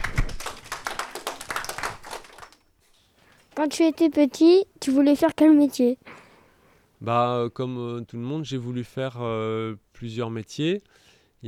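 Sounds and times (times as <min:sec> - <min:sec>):
people applauding: 0:00.0 - 0:02.6
speech: 0:03.6 - 0:06.2, 0:07.0 - 0:11.4.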